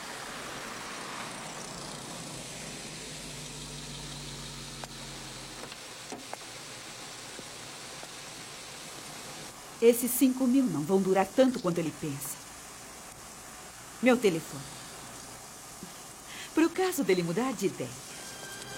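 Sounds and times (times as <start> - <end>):
car engine idling: 0.0 - 5.8
speech: 9.8 - 12.4, 14.0 - 14.8, 16.8 - 18.0.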